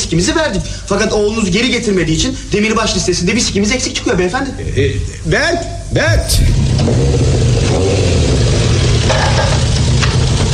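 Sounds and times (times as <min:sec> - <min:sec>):
speech: 0:00.1 - 0:08.0
motorcycle engine revving: 0:06.2 - 0:10.5.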